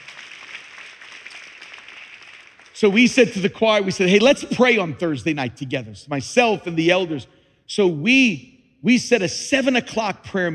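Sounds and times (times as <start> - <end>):
audience clapping for a choir: 0.0 - 3.6
speech: 2.8 - 10.5.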